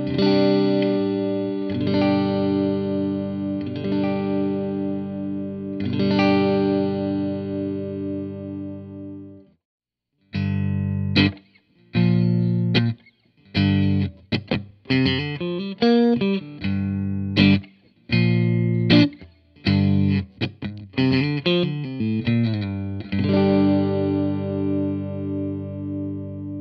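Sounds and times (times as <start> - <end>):
clean electric guitar on middle and neck pickups: 0.0 - 9.6, 10.3 - 26.5.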